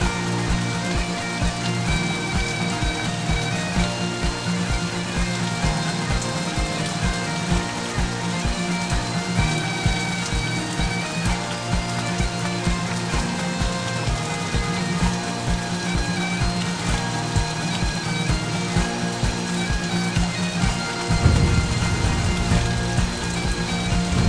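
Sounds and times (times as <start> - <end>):
sea ambience: 0.0 - 24.2.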